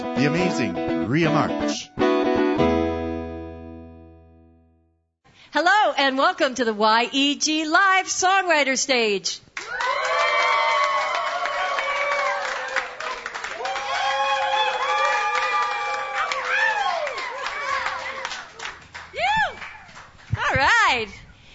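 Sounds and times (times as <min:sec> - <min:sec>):
speech: 0:00.2 - 0:02.0, 0:02.6 - 0:02.8, 0:05.6 - 0:09.9
rising excited yells: 0:09.6 - 0:18.6, 0:19.2 - 0:21.0
lively live audience cheering and whooping: 0:09.6 - 0:20.6
scattered clapping: 0:09.6 - 0:20.9.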